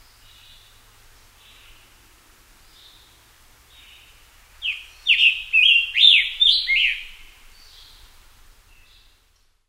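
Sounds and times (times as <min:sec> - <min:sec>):
scarlet tanager calling: 0:04.6 - 0:07.2.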